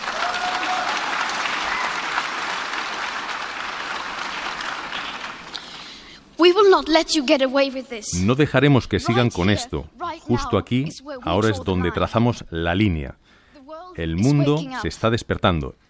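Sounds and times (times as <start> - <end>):
audience applause: 0.0 - 6.0
speech: 6.5 - 13.2, 14.0 - 15.8.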